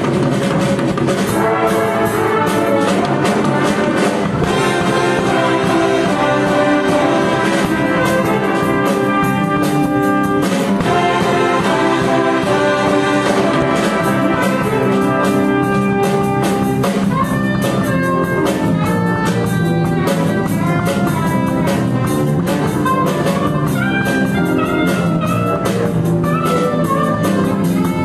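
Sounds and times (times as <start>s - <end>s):
jazz ensemble playing: 0.0s - 28.0s
soprano solo in a jazz ensemble: 4.4s - 28.0s.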